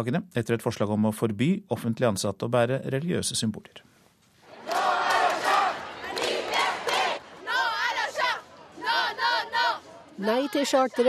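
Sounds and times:
speech: 0.0s - 3.9s, 10.2s - 11.0s
demonstrators chanting a slogan at a protest: 4.4s - 11.0s.

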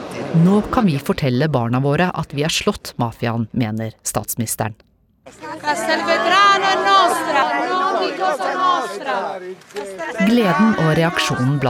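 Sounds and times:
speech: 0.4s - 6.1s, 8.4s - 11.6s
demonstrators shouting against the mafia: 5.3s - 11.6s.

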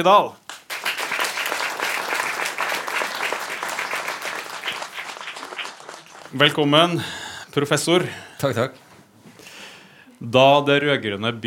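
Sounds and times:
speech: 0.0s - 0.4s, 6.3s - 8.8s, 10.2s - 11.4s
audience applause: 0.5s - 7.3s.

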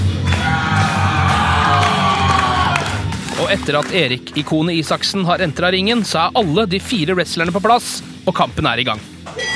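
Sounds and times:
audience cheering: 0.2s - 3.8s
speech: 3.5s - 9.5s.

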